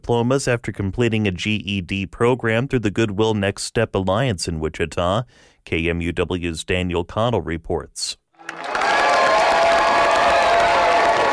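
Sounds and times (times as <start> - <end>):
speech: 0.1 - 8.8
friends and family cheering and applauding at a GED graduation at Wichita State's Hughes Metroplex: 8.4 - 11.3.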